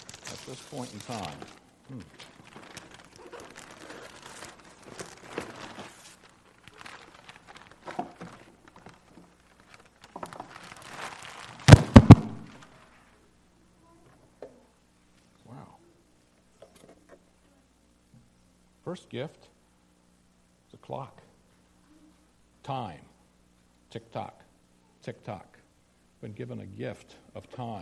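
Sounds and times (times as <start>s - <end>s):
wrapping paper tearing: 0.0s - 7.9s, 9.8s - 12.7s
wrapping paper crinkling on a Christmas gift: 0.0s - 13.1s
speech: 0.5s - 2.3s, 18.9s - 19.6s, 20.9s - 21.2s, 22.7s - 23.0s, 23.9s - 24.4s, 25.0s - 25.6s, 26.2s - 27.7s.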